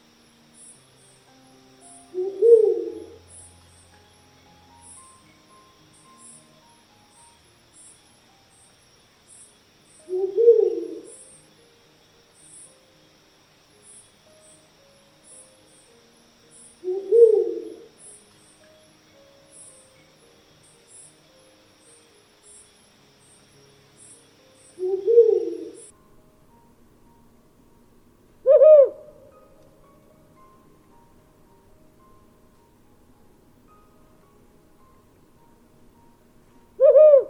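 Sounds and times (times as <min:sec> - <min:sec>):
calm night forest ambience: 0:00.0 - 0:37.2
mystical owl hooting in a calm night forest: 0:02.1 - 0:03.2, 0:10.0 - 0:11.4, 0:16.8 - 0:17.9, 0:24.7 - 0:25.9, 0:28.4 - 0:29.3, 0:36.8 - 0:37.2.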